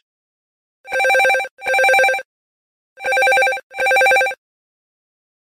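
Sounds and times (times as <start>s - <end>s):
Samsung Galaxy S4 phone sound: 0.9s - 2.2s, 3.0s - 4.4s.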